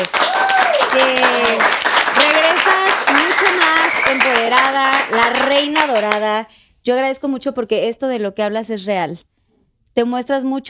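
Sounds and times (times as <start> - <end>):
applause: 0.0 - 6.3
speech: 5.7 - 9.3, 10.0 - 10.6.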